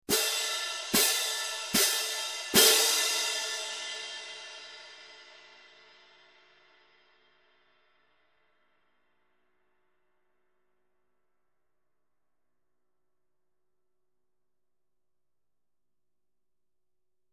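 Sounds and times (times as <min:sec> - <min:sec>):
18-inch stadium medium cymbal pair: 0:00.1 - 0:07.4.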